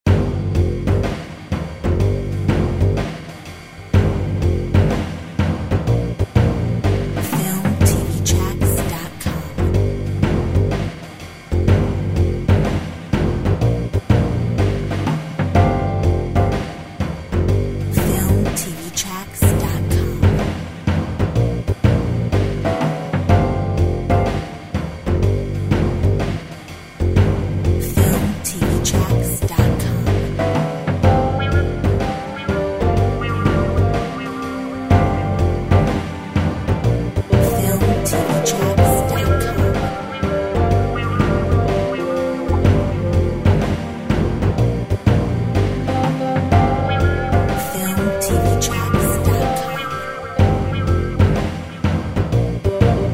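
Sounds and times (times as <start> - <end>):
Big Apple jazz music: 0.1 - 53.1.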